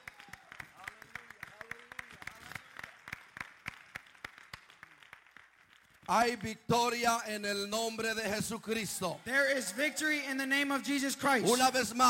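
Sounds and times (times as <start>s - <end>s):
audience clapping hands: 0.0s - 7.2s
speech: 6.1s - 12.0s.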